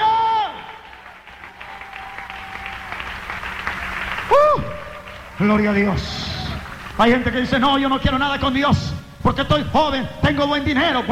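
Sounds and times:
audience applause: 0.0 - 7.4
speech: 5.4 - 6.3, 7.0 - 11.1.

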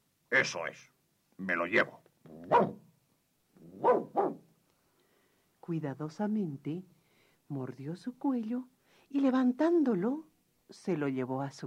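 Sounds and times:
speech: 0.3 - 2.8, 5.7 - 11.6
dog barking: 2.4 - 2.9, 3.7 - 4.5.

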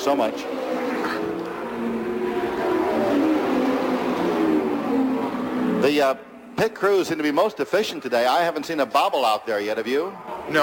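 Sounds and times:
speech: 0.0 - 0.8, 5.8 - 10.6
race car leaving pit onto track: 0.0 - 7.4.

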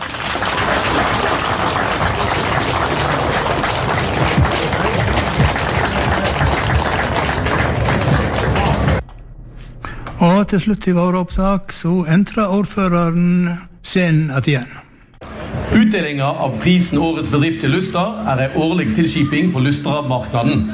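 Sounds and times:
audience applause: 0.0 - 9.0
speech: 10.5 - 14.8, 15.7 - 20.7.

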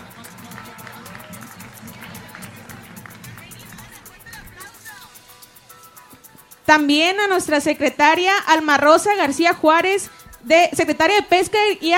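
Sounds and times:
crowd applause: 0.0 - 4.9
people cheering: 0.0 - 5.2
speech: 6.7 - 11.9.

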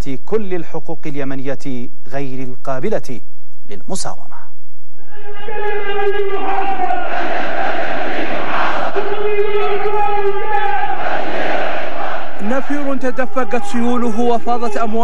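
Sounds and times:
speech: 0.0 - 4.4, 5.2 - 7.3, 12.6 - 15.0
huge crowd chanting with anger and defiance at a mass rally in Yemen: 5.0 - 13.8.

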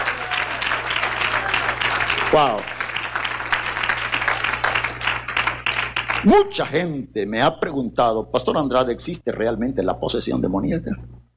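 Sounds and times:
audience applause: 0.0 - 6.6
speech: 2.3 - 2.8, 6.2 - 11.1.

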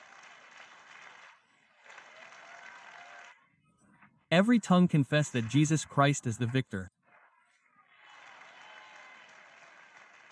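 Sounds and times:
church congregation clapping during a worship service: 0.0 - 3.4, 4.7 - 6.8, 8.0 - 10.3
speech: 4.4 - 7.0.

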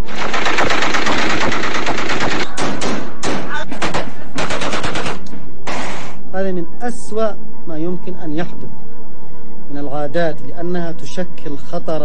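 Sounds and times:
celebratory gunfire with live ammunition: 0.0 - 6.2
speech: 7.1 - 8.9, 10.0 - 12.0.

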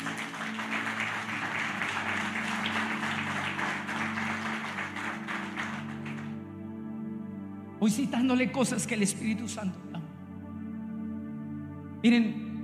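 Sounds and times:
audience applauding: 0.0 - 6.4
speech: 7.8 - 10.0, 12.0 - 12.5.

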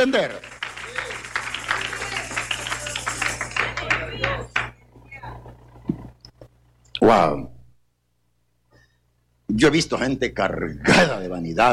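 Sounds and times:
speech: 0.0 - 0.6, 7.1 - 7.5, 9.5 - 11.7
audience applauding in praise: 0.0 - 4.8.

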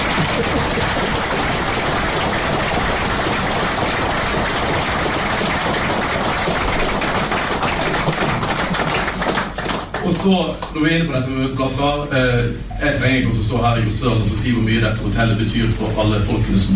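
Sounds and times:
audience applause: 0.0 - 10.7
speech: 10.2 - 16.7.

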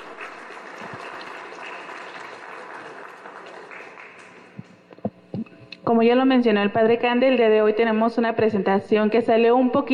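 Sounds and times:
audience applause: 0.0 - 4.6
speech: 5.9 - 9.9.

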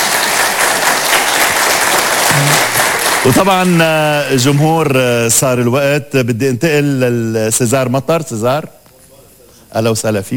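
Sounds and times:
audience applauding guests at a live show: 0.0 - 4.9
speech: 3.2 - 8.8, 9.7 - 10.3.

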